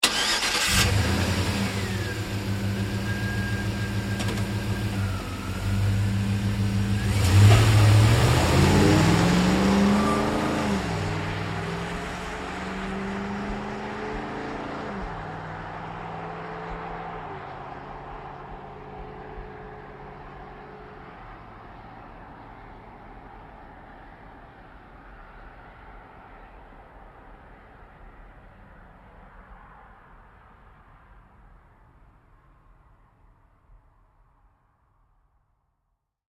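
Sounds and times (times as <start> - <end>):
GMC Savana truck starting and driving away: 0.0 - 20.9.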